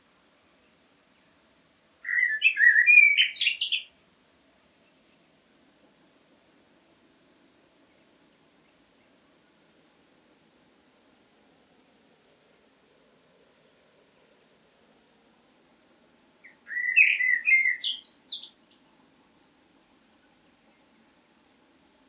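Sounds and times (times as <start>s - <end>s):
blackbird singing: 2.0s - 3.9s, 16.4s - 18.8s.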